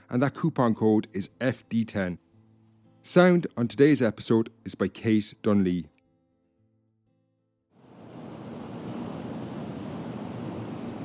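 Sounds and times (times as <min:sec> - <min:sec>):
speech: 0:00.1 - 0:02.2, 0:03.0 - 0:05.9
waves crashing against the shore: 0:07.8 - 0:11.0.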